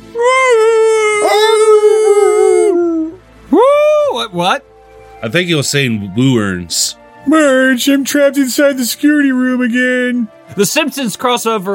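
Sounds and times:
dog howling loudly: 0.2s - 3.9s
speech: 4.4s - 11.7s.

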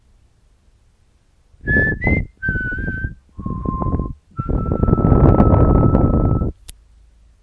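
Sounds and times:
whistle: 1.6s - 6.6s.

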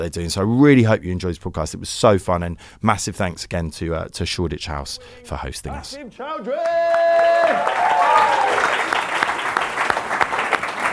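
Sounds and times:
speech: 0.0s - 8.9s
person cheering: 6.4s - 8.9s
audience applause: 6.6s - 10.9s.

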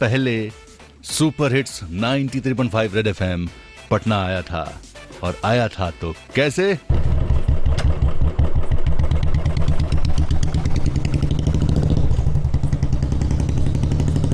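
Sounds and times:
speech: 0.0s - 7.1s
Royal Enfield Bullet motorcycle engine thumping: 6.9s - 14.3s.

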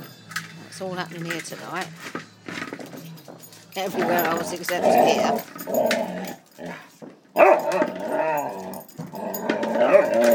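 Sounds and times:
speech: 0.8s - 2.2s, 3.8s - 6.8s
dog growling: 3.9s - 10.3s
dog barking on a fireworks night: 7.4s - 7.8s.

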